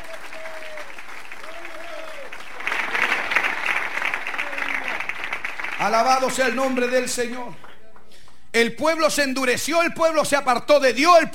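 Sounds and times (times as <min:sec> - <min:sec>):
audience clapping hands loudly: 0:00.0 - 0:08.5
speech: 0:05.8 - 0:07.7, 0:08.5 - 0:11.3.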